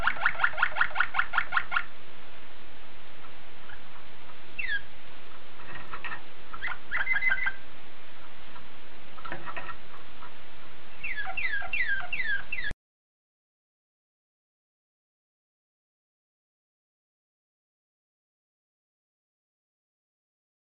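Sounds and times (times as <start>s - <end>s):
Waterslager canary singing: 0.0s - 2.0s, 3.2s - 12.8s.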